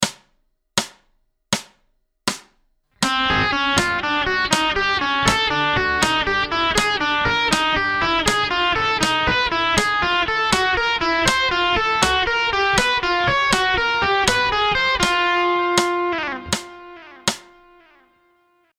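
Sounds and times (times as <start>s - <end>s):
slow music: 3.0s - 17.9s.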